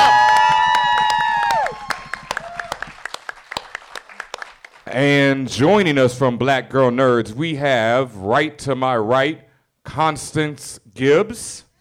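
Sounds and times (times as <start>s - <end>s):
whoops: 0.0s - 3.0s
live crowd clapping and cheering: 0.0s - 4.9s
speech: 4.9s - 11.7s.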